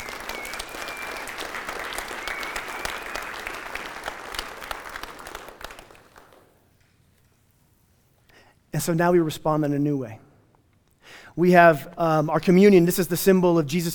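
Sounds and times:
audience applause: 0:00.0 - 0:06.6
speech: 0:08.8 - 0:10.2, 0:11.4 - 0:13.9.

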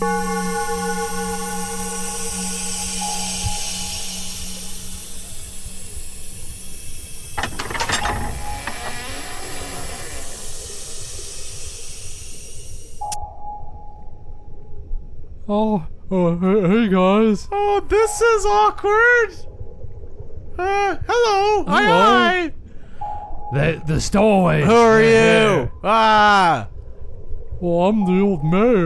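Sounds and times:
droning alarm tone: 0:00.0 - 0:15.0, 0:23.0 - 0:25.8
low hum: 0:00.0 - 0:28.8
steam-like hissing: 0:00.1 - 0:13.1
secret door mechanism clanking and ratcheting: 0:07.4 - 0:10.0
speech: 0:15.5 - 0:19.5, 0:20.6 - 0:22.6, 0:23.5 - 0:26.7, 0:27.6 - 0:28.8.

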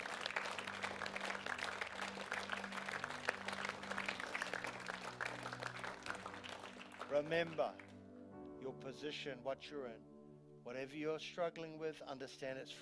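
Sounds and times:
audience clapping: 0:00.0 - 0:08.0
low keyboard or organ chords: 0:00.0 - 0:11.4
speech: 0:07.1 - 0:07.9, 0:08.7 - 0:12.8.

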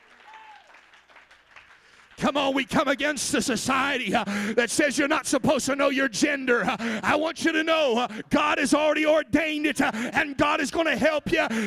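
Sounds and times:
audience clapping hands: 0:00.0 - 0:03.2
speech: 0:02.2 - 0:11.6.

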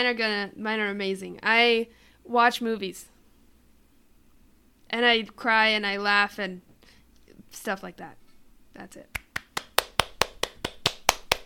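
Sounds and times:
speech: 0:00.0 - 0:03.1, 0:04.9 - 0:06.7, 0:07.5 - 0:08.2, 0:08.8 - 0:09.2
one person clapping: 0:09.1 - 0:11.4.

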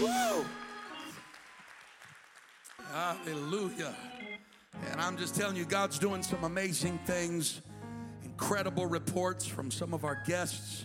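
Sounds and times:
audience clapping: 0:00.0 - 0:04.8
speech: 0:02.9 - 0:04.2, 0:04.8 - 0:07.8, 0:08.4 - 0:10.8.

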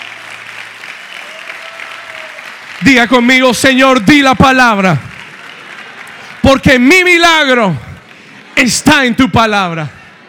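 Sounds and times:
loud audience applause: 0:00.0 - 0:08.8
speech: 0:02.8 - 0:05.1, 0:06.5 - 0:07.8, 0:08.6 - 0:10.0.

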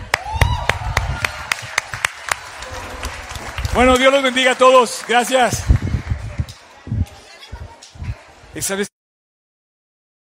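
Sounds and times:
audience applause: 0:00.0 - 0:06.9
speech: 0:03.8 - 0:05.7, 0:08.6 - 0:08.9.

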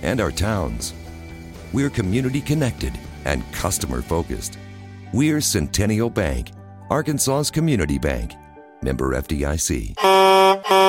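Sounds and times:
speech: 0:00.0 - 0:01.0, 0:01.7 - 0:10.3
MC Express fleet truck air horn: 0:10.0 - 0:10.8.

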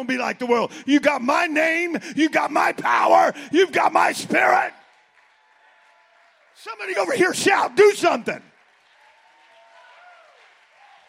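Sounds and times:
speech: 0:00.0 - 0:04.8, 0:06.6 - 0:08.5
audience clapping hands: 0:04.2 - 0:11.0.

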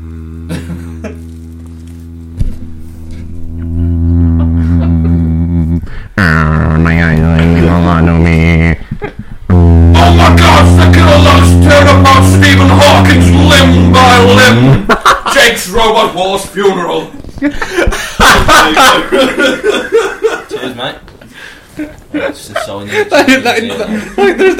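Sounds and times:
rough buzzing vocal bursts: 0:00.0 - 0:08.8, 0:09.5 - 0:14.9
voice imitating a menacingly low hum: 0:00.0 - 0:14.8
speech: 0:06.2 - 0:08.8, 0:10.2 - 0:14.8, 0:15.4 - 0:19.8, 0:22.8 - 0:24.5
laughter: 0:08.8 - 0:09.4, 0:12.8 - 0:15.8, 0:17.4 - 0:20.9, 0:21.8 - 0:24.5.

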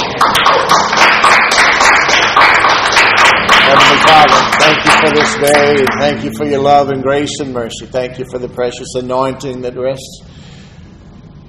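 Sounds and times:
audience clapping hands in praise: 0:00.0 - 0:06.6
speech: 0:05.3 - 0:10.4.

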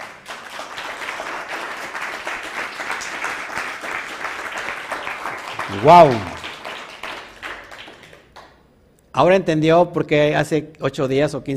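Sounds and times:
audience applause: 0:00.0 - 0:08.5
speech: 0:05.7 - 0:06.3, 0:09.2 - 0:11.5.

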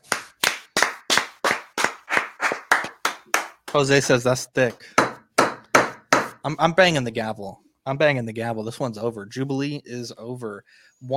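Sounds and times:
applause: 0:00.0 - 0:03.8
speech: 0:03.7 - 0:05.1, 0:06.4 - 0:11.1.

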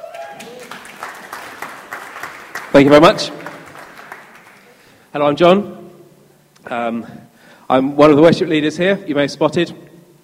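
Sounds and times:
audience applause: 0:00.0 - 0:05.0
speech: 0:02.8 - 0:03.4, 0:05.2 - 0:05.8, 0:06.7 - 0:09.8.

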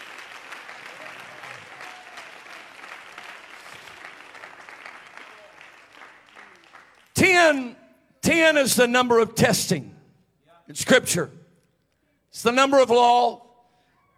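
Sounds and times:
audience clapping hands: 0:00.0 - 0:07.6
speech: 0:07.5 - 0:09.9, 0:10.7 - 0:11.4, 0:12.3 - 0:13.4.

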